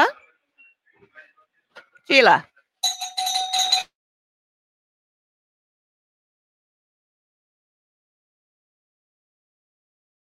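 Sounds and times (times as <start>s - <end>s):
speech: 2.1s - 2.5s
electronic doorbell ringing: 2.8s - 3.9s.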